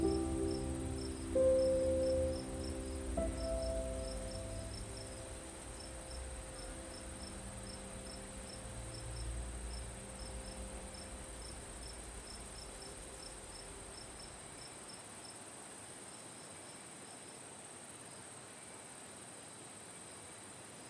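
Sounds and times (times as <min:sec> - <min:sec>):
soft piano notes: 0:00.0 - 0:14.6
thin high hiss: 0:00.0 - 0:15.4
crickets chirping at night: 0:00.0 - 0:20.8.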